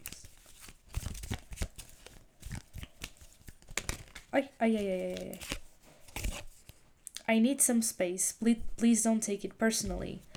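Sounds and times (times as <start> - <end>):
cards falling and being handled: 0.0 - 6.8
speech: 4.4 - 5.6, 7.3 - 10.3.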